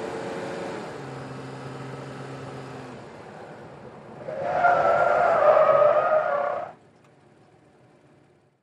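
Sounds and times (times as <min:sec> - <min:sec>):
SUV truck skidding in a 180 turn: 0:03.2 - 0:06.8.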